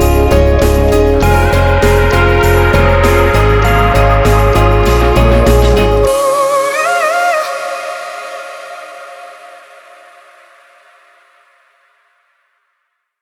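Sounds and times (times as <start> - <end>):
inspiring summer pop background music: 0.0 - 9.3.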